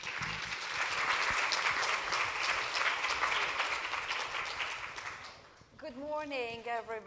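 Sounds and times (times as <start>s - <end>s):
audience applause welcoming a speaker: 0.0s - 5.5s
speech: 6.2s - 7.0s.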